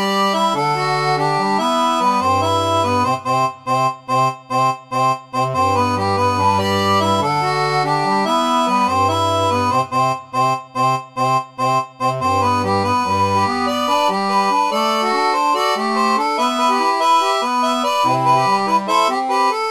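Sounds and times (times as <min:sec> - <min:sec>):
seraphone barrel organ playing: 0:00.0 - 0:19.6.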